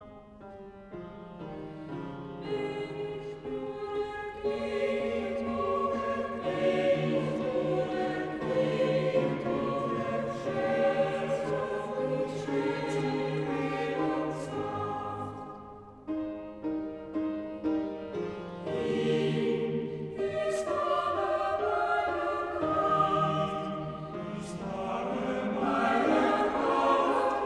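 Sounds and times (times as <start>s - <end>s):
mixed chamber choir singing: 1.3s - 27.4s.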